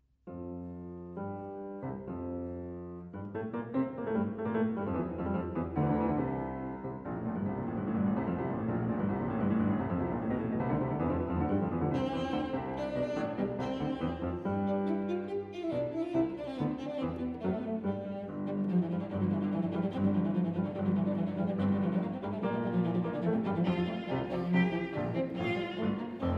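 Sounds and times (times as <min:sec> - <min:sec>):
piano trio: 0:00.3 - 0:26.3.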